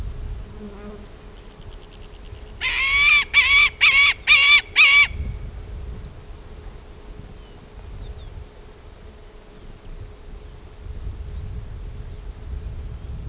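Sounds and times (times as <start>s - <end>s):
white-tailed hawk calling: 1.8s - 5.3s.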